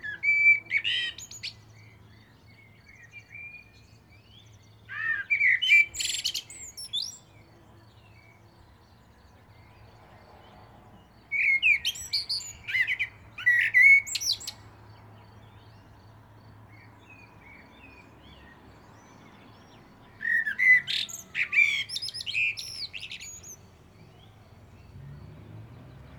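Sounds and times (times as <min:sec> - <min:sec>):
common blackbird singing: 0:00.0 - 0:16.1, 0:16.7 - 0:26.1.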